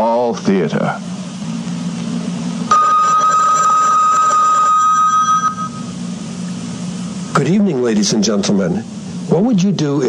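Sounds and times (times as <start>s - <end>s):
low hum: 0.0s - 10.0s
speech: 0.3s - 1.1s, 7.4s - 10.0s
bell marking the top of the hour: 2.7s - 6.0s.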